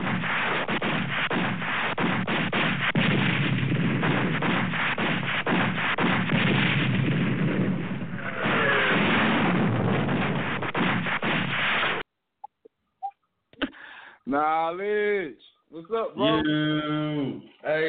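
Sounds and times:
DJ bomb sound effects of explosions and gunfire: 0.0s - 12.0s
speech: 14.4s - 17.8s.

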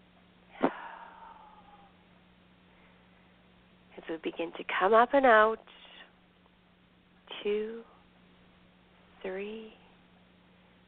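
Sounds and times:
deep cleansing breath in during a guided relaxation session: 0.5s - 1.9s
speech: 4.0s - 5.9s, 7.4s - 7.9s, 9.2s - 9.8s.

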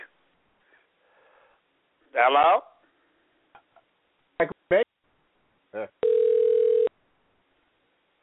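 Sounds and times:
speech: 2.2s - 2.7s
telephone ringing: 6.0s - 6.9s.

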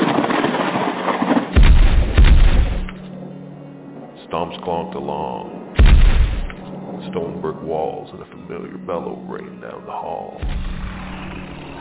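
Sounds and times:
thunder crack from lightning strike: 0.0s - 3.0s, 5.8s - 6.6s, 10.4s - 11.7s
speech: 4.4s - 5.6s, 7.1s - 10.8s.

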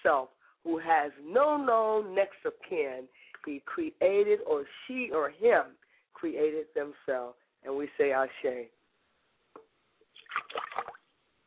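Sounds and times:
speech: 0.0s - 8.8s
liquid poured as libation splashing onto a surface: 10.1s - 11.1s.

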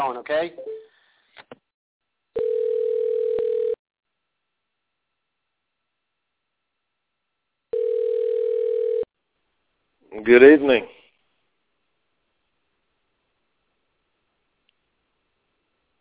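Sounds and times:
speech: 0.0s - 0.7s, 10.1s - 11.0s
telephone dial tone: 2.4s - 3.8s, 7.7s - 9.0s.

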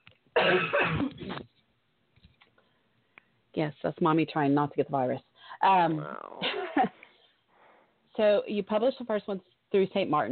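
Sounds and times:
harsh cough: 0.4s - 1.4s
speech: 0.5s - 1.4s, 3.6s - 6.9s, 8.2s - 10.3s.

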